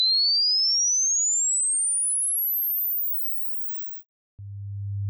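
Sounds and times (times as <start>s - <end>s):
test signal noise: 1.8s - 4.0s.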